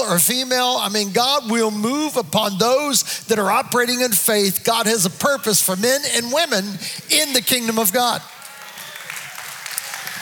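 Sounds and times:
speech: 0.1s - 8.4s
audience applause: 8.3s - 10.2s.

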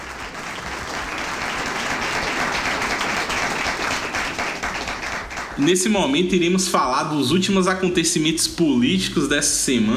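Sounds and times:
applause: 0.0s - 6.3s
speech: 5.6s - 9.9s.

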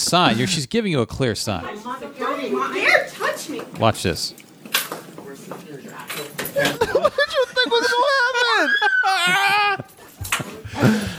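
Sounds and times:
laughter: 0.0s - 0.6s, 6.4s - 11.1s
speech: 0.0s - 4.4s
woman screaming: 7.8s - 9.9s.

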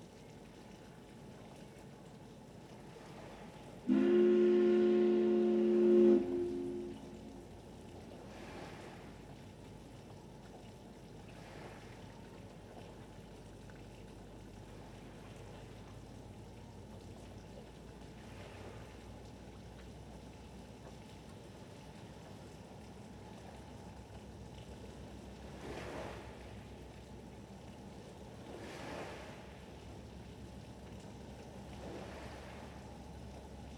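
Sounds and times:
harbor water wash: 0.0s - 33.7s
ferry horn: 3.9s - 7.5s.

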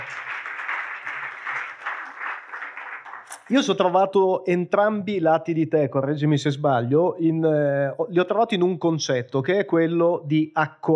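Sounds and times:
audience applause: 0.0s - 3.7s
speech: 3.5s - 10.9s.

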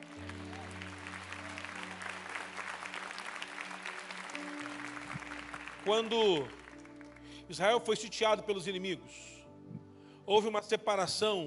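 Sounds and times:
audience applause: 0.0s - 7.3s
speech: 5.8s - 6.6s, 7.5s - 9.4s, 10.3s - 11.4s.

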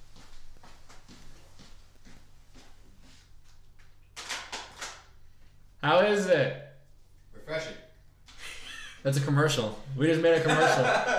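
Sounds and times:
footsteps of a person walking across a room: 0.0s - 5.8s
speech: 5.8s - 6.6s, 9.0s - 11.1s
laughter: 8.4s - 9.0s, 10.3s - 11.1s.

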